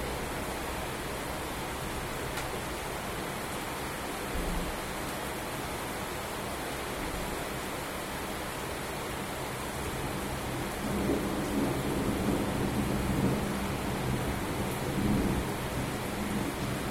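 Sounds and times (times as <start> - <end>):
rain at home: 0.0 - 16.8.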